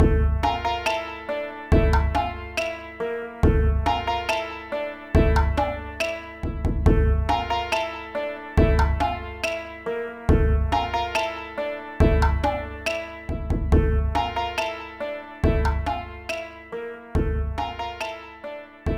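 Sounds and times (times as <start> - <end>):
jig tune: 0.0 - 18.9.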